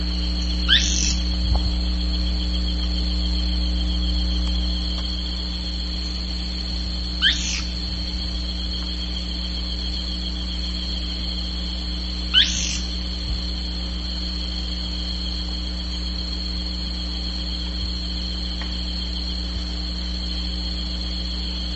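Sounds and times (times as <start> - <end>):
bird calling: 0.0 - 1.7, 7.1 - 8.9, 12.3 - 13.0
constant low hum: 0.0 - 21.7.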